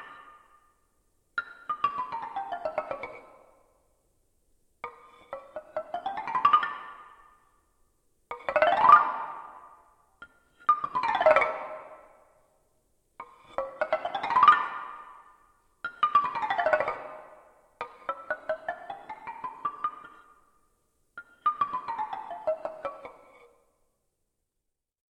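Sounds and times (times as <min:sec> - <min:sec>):
exzilaphone wooden various notes: 0:01.4 - 0:03.7, 0:04.8 - 0:07.6, 0:08.3 - 0:12.4, 0:13.2 - 0:20.5, 0:21.2 - 0:23.7.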